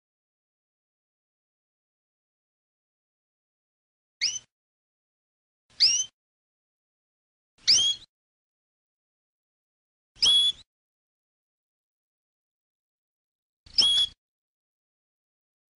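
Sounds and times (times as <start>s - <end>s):
canary song with buzzy tour, whistled notes and trills: 4.2s - 4.5s, 5.8s - 6.1s, 7.6s - 8.1s, 10.2s - 10.6s, 13.7s - 14.2s.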